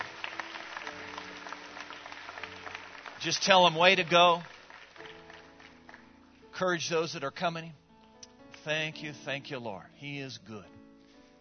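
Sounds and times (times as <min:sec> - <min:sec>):
audience applause: 0:00.0 - 0:06.1
speech: 0:03.2 - 0:04.5, 0:06.6 - 0:07.8, 0:08.6 - 0:10.8.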